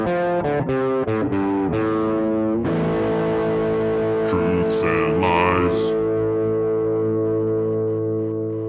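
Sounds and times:
speech: 0.0 - 1.4, 4.7 - 6.0
guitar jingle with effects: 2.7 - 8.5.

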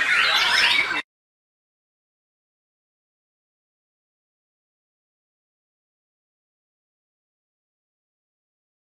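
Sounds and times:
Oriental magpie-robin song with chirps, squeaky whistles and harsh notes: 0.0 - 1.1.

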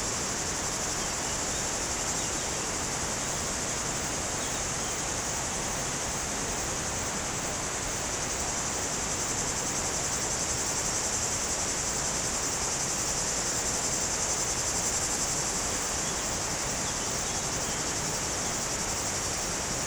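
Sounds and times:
cicadas buzzing in trees on a hot day: 0.0 - 19.8.

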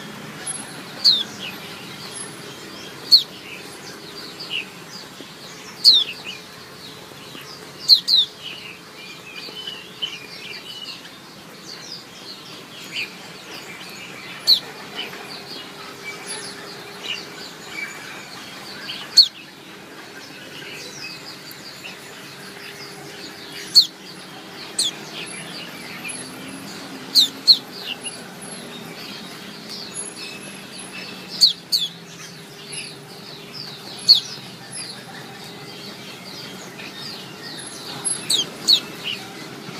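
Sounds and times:
small birds twittering: 0.0 - 39.7
Oriental white-eye chirping: 2.8 - 6.4, 12.8 - 19.5, 20.4 - 39.4.

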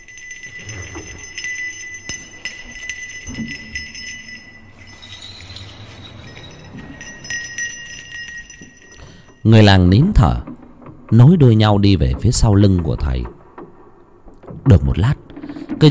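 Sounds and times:
hand bell ringing: 0.0 - 9.6
wooden temple block: 0.0 - 13.6
speech: 3.3 - 3.6, 9.4 - 10.5, 11.1 - 13.4, 14.6 - 15.2, 15.8 - 15.9.

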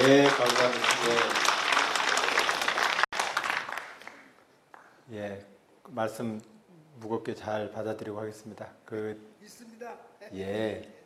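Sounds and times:
audience applause: 0.0 - 4.4
speech: 6.0 - 11.0.

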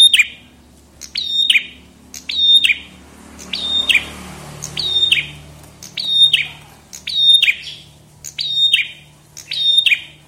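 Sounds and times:
tailorbird singing, song used for training cage birds: 0.0 - 10.2.

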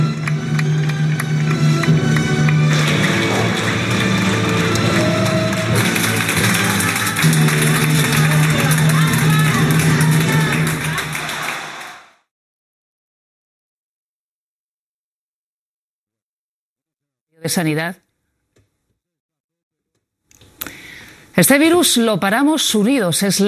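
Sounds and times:
theatre audience applause: 0.0 - 12.2
speech: 17.5 - 18.0, 21.4 - 23.4.

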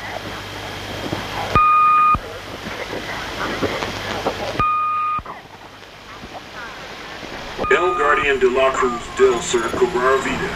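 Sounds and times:
UVB-76 shortwave radio static crackling: 0.0 - 10.5
UVB-76 shortwave radio flat electronic tones: 1.5 - 2.3, 4.6 - 5.3, 7.3 - 10.5
speech: 8.3 - 10.5.

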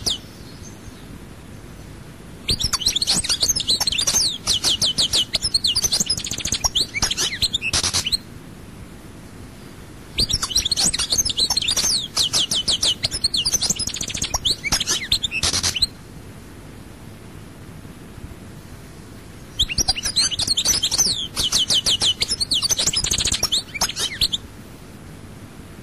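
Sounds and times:
European goldfinch song of tinkling twitters and trills: 0.0 - 1.1, 2.5 - 8.2, 10.2 - 16.0, 19.5 - 24.4.

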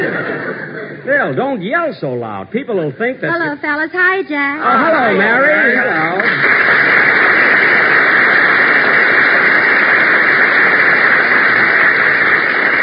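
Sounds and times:
laughter: 0.0 - 1.1
speech: 1.0 - 6.7
studio audience applause: 4.8 - 12.8.

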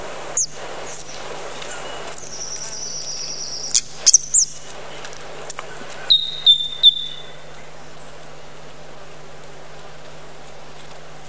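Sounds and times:
bird chirps: 0.4 - 4.7, 6.0 - 7.7.

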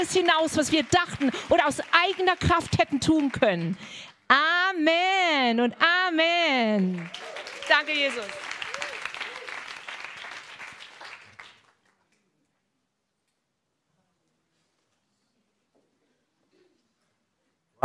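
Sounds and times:
audience applauding: 0.0 - 4.0, 6.7 - 12.2
speech: 0.0 - 8.5.

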